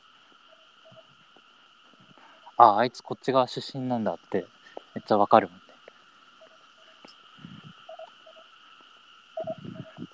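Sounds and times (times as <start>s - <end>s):
frogs croaking in rice fields: 0.0s - 10.1s
speech: 2.6s - 5.6s.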